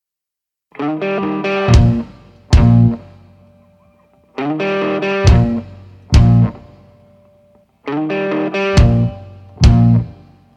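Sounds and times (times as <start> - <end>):
rock song intro: 0.8 - 7.1, 7.8 - 10.5.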